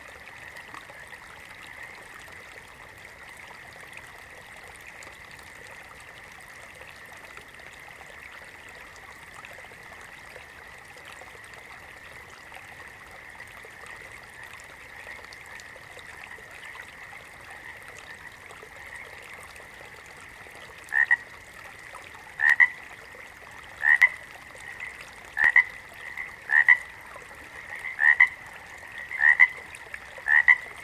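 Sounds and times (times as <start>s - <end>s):
water frog giving brief paired croaks: 20.9s - 21.3s, 22.3s - 22.8s, 23.8s - 30.8s.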